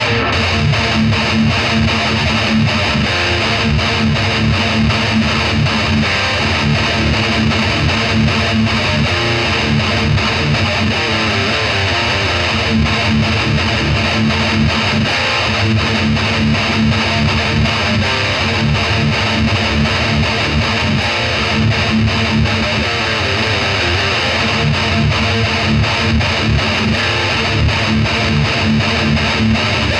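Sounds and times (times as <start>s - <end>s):
metal music: 0.0s - 29.9s.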